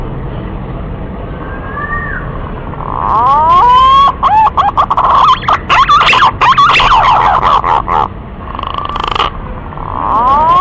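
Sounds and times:
green pigeon lure call of sweeping quavering whistles: 0:02.8 - 0:08.1, 0:08.7 - 0:10.5.

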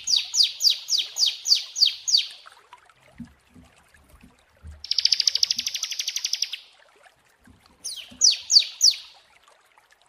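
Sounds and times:
prinia singing: 0:00.0 - 0:02.4, 0:04.8 - 0:06.7, 0:07.8 - 0:09.2.

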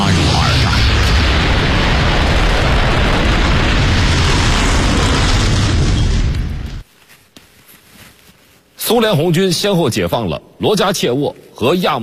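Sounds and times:
aircraft bombing explosions: 0:00.0 - 0:06.8
speech: 0:08.9 - 0:12.0.

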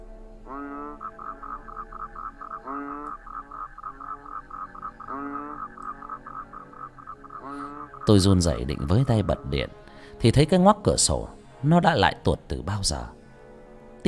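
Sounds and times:
toads and frogs croaking outside: 0:00.0 - 0:10.2
speech: 0:08.0 - 0:13.2.

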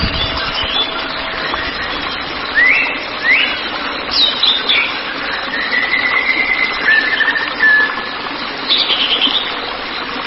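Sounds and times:
white-rumped shama song: 0:00.0 - 0:10.1.

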